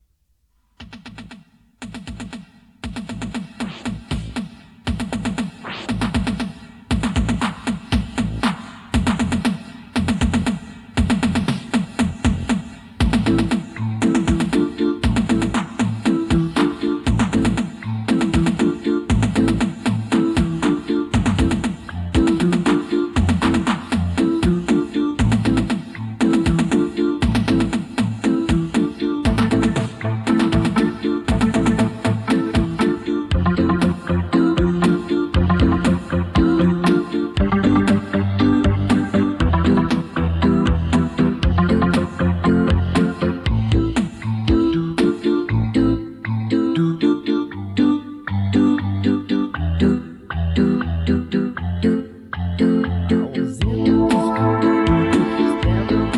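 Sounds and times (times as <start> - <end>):
disco music: 1.9 - 56.1.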